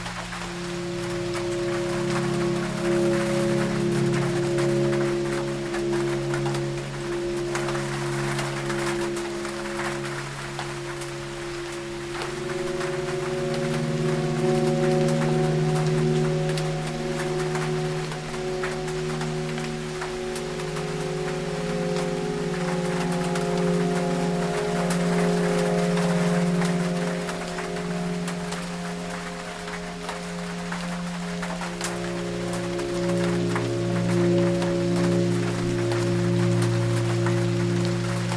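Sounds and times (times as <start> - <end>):
deep sleep music of sustained low droning tones: 0.0 - 38.3
rain on a tin roof: 0.0 - 38.3.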